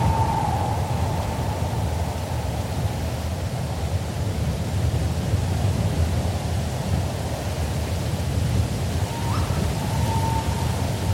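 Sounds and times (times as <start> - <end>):
faint thin whistling tone: 0.0 - 1.8, 9.0 - 11.1
cool breeze rustling forest trees: 0.0 - 11.1.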